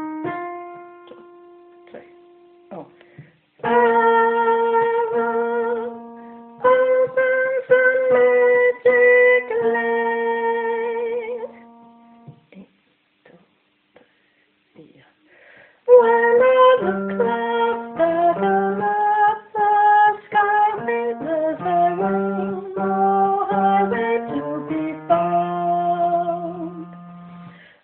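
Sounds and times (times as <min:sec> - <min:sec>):
tenor singing: 0:03.6 - 0:12.2, 0:15.9 - 0:27.1.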